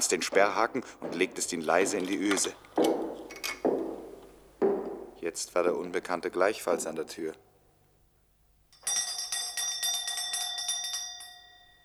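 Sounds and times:
speech: 0.1 - 3.0, 5.3 - 7.5
tinny rattling doorbell ring: 8.8 - 11.8.

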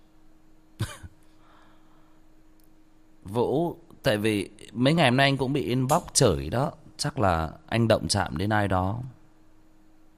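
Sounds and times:
coughing: 0.8 - 1.3
speech: 3.3 - 9.2.

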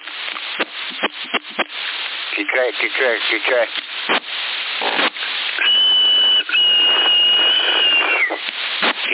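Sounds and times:
constant CB radio hiss: 0.0 - 9.1
speech: 2.5 - 4.3
high-pitched whistle over a CB radio channel in Sassari: 5.6 - 8.4.

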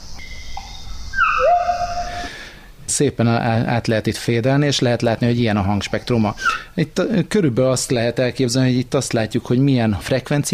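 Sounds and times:
recorded bird call sample: 0.0 - 2.3
speech: 2.9 - 10.5.

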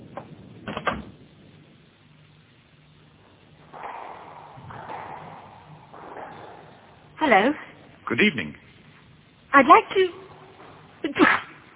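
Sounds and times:
speech: 7.3 - 8.6, 9.5 - 10.2, 11.0 - 11.5
sneeze: 11.1 - 11.6.

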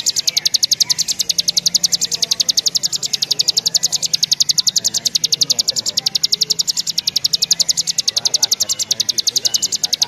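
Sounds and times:
bar-winged prinia delivering a rapid string of bright high notes: 0.0 - 10.0.

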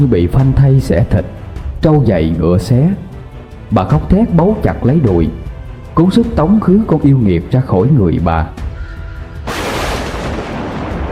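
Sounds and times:
speech: 0.0 - 3.1, 3.7 - 8.7
thunderclap: 9.4 - 11.0.

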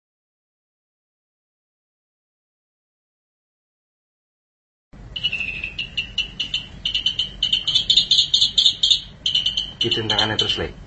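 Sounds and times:
long-tailed shrike song: 5.1 - 10.6
speech: 9.8 - 10.8.

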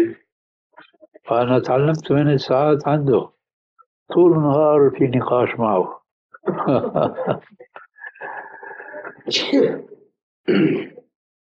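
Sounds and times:
speech: 1.3 - 3.4, 4.1 - 7.7, 9.3 - 10.9
laughter: 6.4 - 9.3
sneeze: 9.3 - 9.9.

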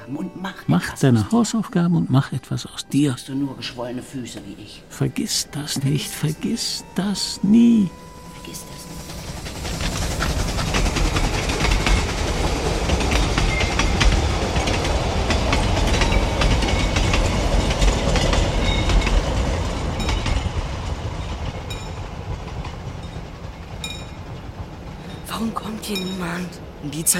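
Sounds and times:
speech: 0.1 - 8.9, 26.3 - 27.1
train rumbling past: 2.4 - 27.1
wheels clacking on rail joints: 9.0 - 27.1.

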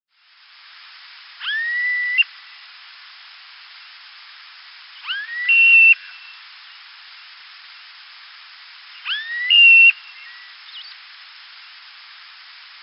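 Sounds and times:
Smooth-billed ani (Crotophaga ani) whining rising whistled calls: 1.4 - 2.3, 5.0 - 6.4, 9.0 - 11.0.

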